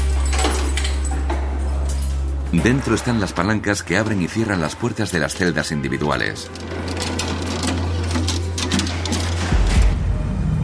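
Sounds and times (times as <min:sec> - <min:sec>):
guard's keys jingling unlocking the control room door at Alcatraz prison: 0:00.0 - 0:03.2, 0:06.2 - 0:09.5
speech: 0:02.5 - 0:06.9.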